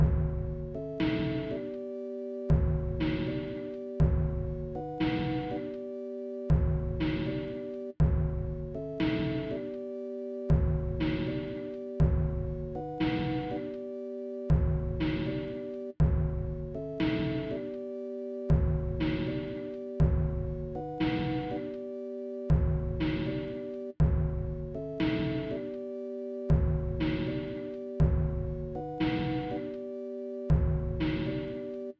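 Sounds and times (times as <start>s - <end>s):
sine wave tone: 0.0s - 31.9s.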